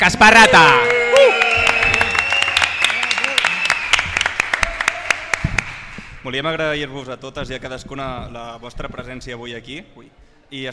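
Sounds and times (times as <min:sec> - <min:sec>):
speech: 0:00.0 - 0:01.0, 0:06.3 - 0:10.7
audience applauding the band members: 0:00.4 - 0:06.2.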